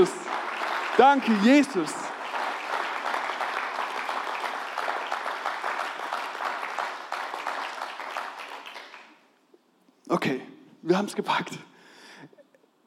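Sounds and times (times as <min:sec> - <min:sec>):
speech: 0:00.0 - 0:00.2, 0:01.0 - 0:02.1, 0:10.2 - 0:11.7
audience applause: 0:00.0 - 0:09.2.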